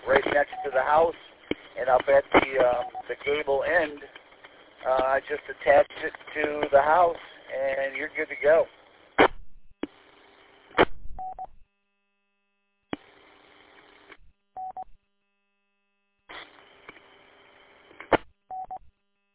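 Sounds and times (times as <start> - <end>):
radio static hiss: 0.0 - 11.0, 12.9 - 14.2, 16.3 - 18.3
speech: 0.4 - 4.2, 4.8 - 8.8
ham radio repeater Morse code identification beeps: 2.8 - 3.1, 11.2 - 11.5, 14.6 - 14.9, 18.5 - 18.8.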